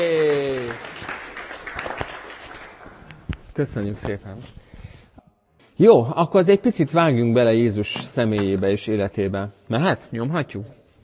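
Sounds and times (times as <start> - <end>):
audience applause: 0.0 - 3.2
speech: 3.6 - 4.6, 5.8 - 10.8.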